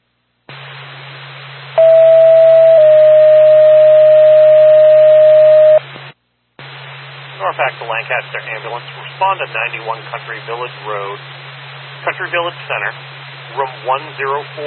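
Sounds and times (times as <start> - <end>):
radio dispatch alert tone beep: 1.8 - 5.8
radio static hiss with low hum: 5.6 - 14.6
speech: 7.9 - 11.4, 12.0 - 14.6.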